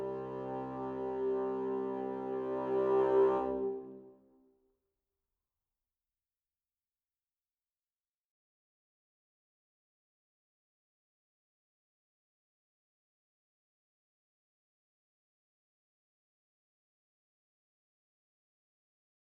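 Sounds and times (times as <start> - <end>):
bassoons playing: 0.0 - 4.1.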